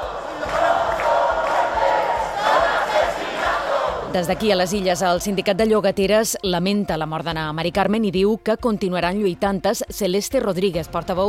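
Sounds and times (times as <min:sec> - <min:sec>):
protesters shouting at parliament: 0:00.0 - 0:05.1
rhythmic chanting: 0:00.0 - 0:06.2
speech: 0:04.1 - 0:11.2.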